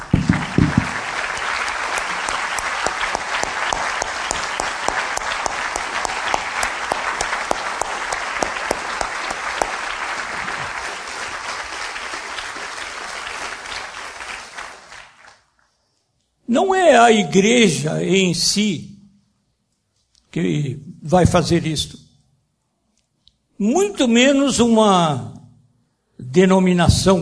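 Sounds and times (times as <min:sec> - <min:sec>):
audience applause: 0:00.0 - 0:15.5
speech: 0:16.9 - 0:18.9, 0:20.4 - 0:22.0, 0:23.6 - 0:25.3, 0:26.3 - 0:27.1.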